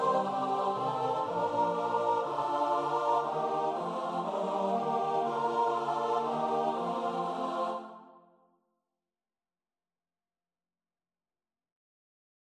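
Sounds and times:
choir singing: 0.0s - 8.3s.

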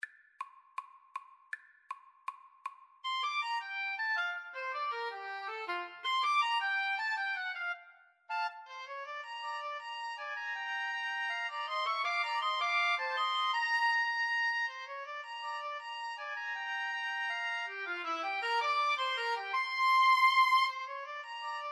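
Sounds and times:
woodwind trio: 3.1s - 21.7s.

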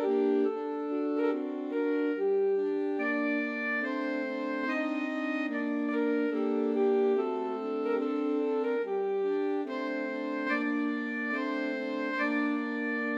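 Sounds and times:
alto sax quartet: 0.0s - 13.1s.

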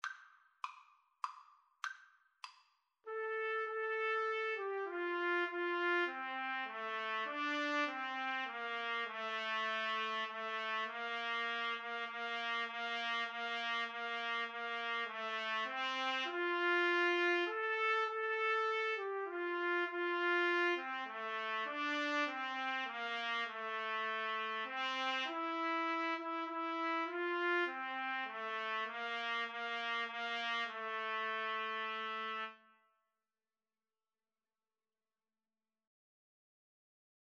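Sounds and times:
trumpet duet: 3.1s - 32.7s.

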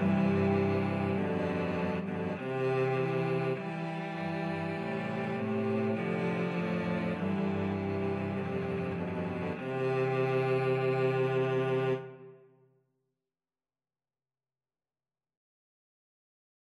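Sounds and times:
cello quartet: 0.0s - 12.5s.

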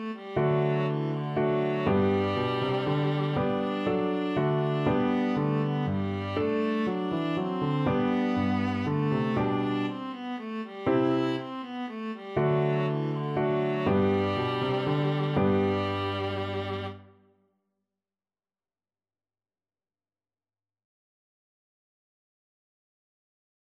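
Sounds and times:
viola playing a minuet: 0.0s - 17.2s.

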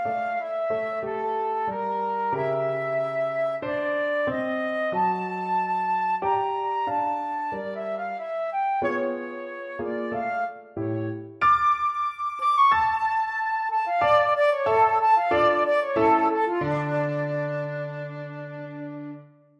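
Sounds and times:
flute: 0.0s - 19.4s
piano: 0.0s - 19.5s.

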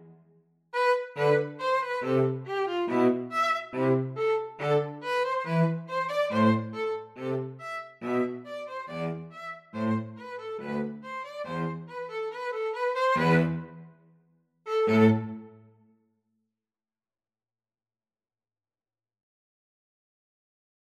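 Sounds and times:
string trio playing a gavotte: 0.8s - 13.8s, 14.7s - 15.6s.

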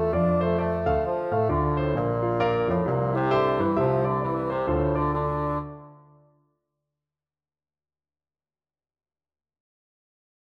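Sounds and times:
bassoon: 0.0s - 6.2s.

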